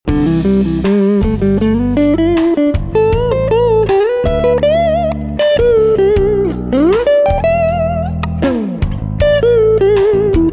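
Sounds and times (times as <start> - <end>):
Orange CR60 guitar amp clean tone with spring reverb: 0.1 - 10.5.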